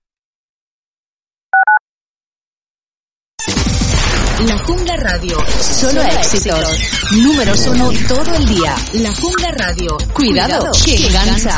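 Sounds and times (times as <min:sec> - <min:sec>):
telephone keypad tones as a number is dialed: 0:01.6 - 0:01.8
loud burst of different sound: 0:03.4 - 0:08.9
speech: 0:04.4 - 0:11.5.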